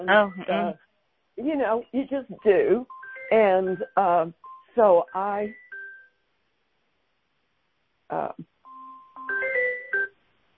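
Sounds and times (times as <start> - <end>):
speech: 0.0 - 5.6, 8.1 - 8.5
phone ringing: 2.4 - 6.2, 8.6 - 10.2.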